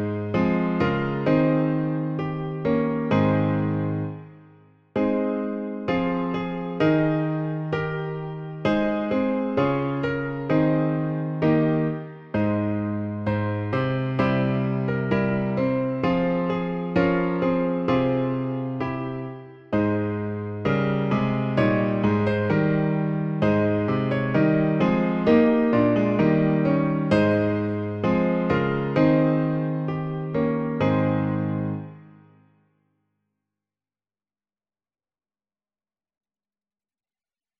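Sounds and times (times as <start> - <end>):
piano version: 0.0 - 32.7.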